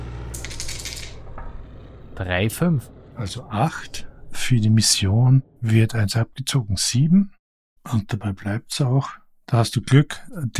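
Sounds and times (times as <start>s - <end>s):
low hum: 0.0s - 6.0s
two six-sided dice rattling on a hard surface: 0.4s - 1.2s
speech: 2.2s - 10.5s.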